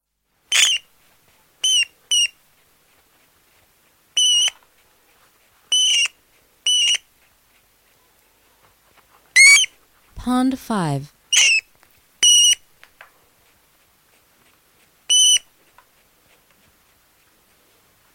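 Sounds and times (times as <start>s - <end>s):
rat squeaking: 0.5s - 0.8s, 1.6s - 2.3s, 4.2s - 4.6s, 5.7s - 7.0s, 9.4s - 9.7s, 11.3s - 12.6s, 15.1s - 15.4s
speech: 10.2s - 11.2s.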